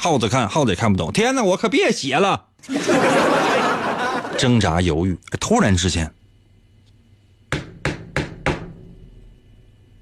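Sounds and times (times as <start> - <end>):
speech: 0.0 - 3.7, 4.4 - 6.2
laughter: 2.6 - 4.6
knocking on a door: 7.5 - 8.9.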